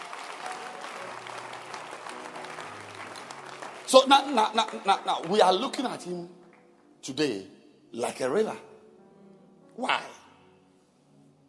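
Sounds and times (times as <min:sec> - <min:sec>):
audience clapping: 0:00.0 - 0:06.7
speech: 0:03.9 - 0:06.4, 0:07.0 - 0:08.7, 0:09.8 - 0:10.2.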